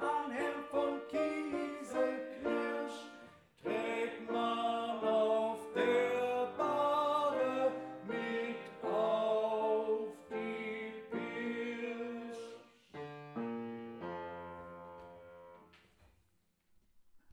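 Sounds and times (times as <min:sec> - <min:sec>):
tenor singing: 0:00.0 - 0:12.8.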